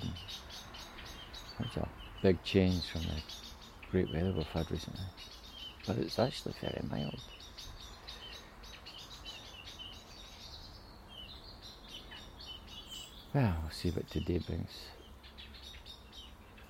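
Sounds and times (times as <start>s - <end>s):
blackbird singing: 0.0s - 16.6s
speech: 1.7s - 7.5s, 13.3s - 15.0s.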